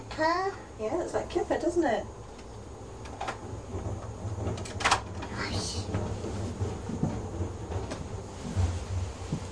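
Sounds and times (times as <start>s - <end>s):
speech: 0.2s - 2.2s
wheelie bin being wheeled back inside: 2.6s - 9.5s.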